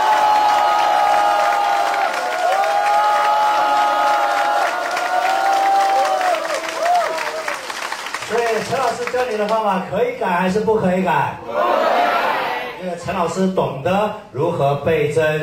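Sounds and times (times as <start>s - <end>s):
cheers and excited high-pitched shouts: 0.0s - 7.7s
large crowd applauding: 0.0s - 9.6s
speech: 9.1s - 11.8s, 12.8s - 15.4s.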